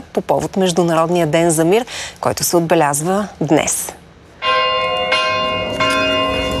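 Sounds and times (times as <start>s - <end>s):
speech: 0.2s - 4.0s
cathedral church bells in Veliko Tarnovo ringing: 4.4s - 6.5s.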